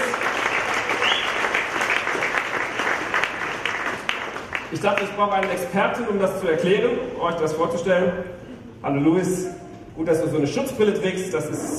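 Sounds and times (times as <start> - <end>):
short audience applause: 0.0 - 5.5
speech: 4.7 - 11.7.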